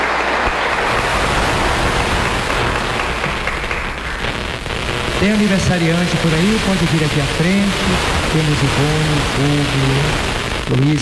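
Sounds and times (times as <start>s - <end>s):
audience applause: 0.0s - 4.8s
speech: 5.2s - 10.9s.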